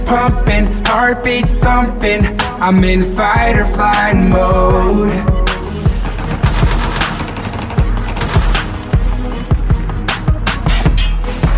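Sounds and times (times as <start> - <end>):
speech: 0.1 - 5.4
heavy thuds: 5.5 - 11.5
machine gun fire: 6.0 - 8.9.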